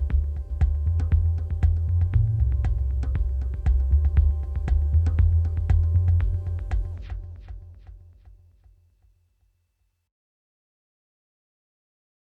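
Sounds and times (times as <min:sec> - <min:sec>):
music beat at 118 bpm: 0:00.0 - 0:08.5.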